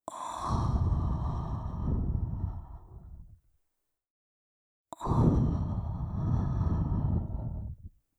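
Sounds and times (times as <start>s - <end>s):
breathy sighs: 0.1s - 3.3s, 5.0s - 7.9s.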